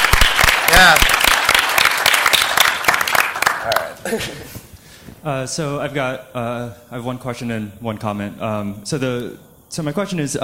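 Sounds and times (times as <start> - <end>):
audience applause: 0.0 - 4.0
speech: 4.1 - 4.5, 5.2 - 10.4.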